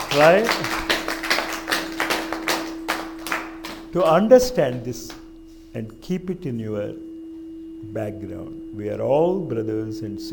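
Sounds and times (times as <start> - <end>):
audience clapping at a spiritual talk by a guru: 0.0 - 5.2
steady low hum: 0.0 - 10.3
speech: 0.2 - 0.8, 3.9 - 5.2, 5.8 - 7.1, 7.8 - 10.3.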